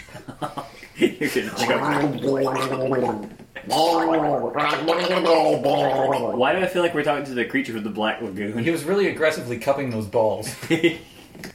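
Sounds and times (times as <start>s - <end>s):
speech: 0.4s - 11.2s
voice imitating gargling for a character: 1.4s - 6.6s.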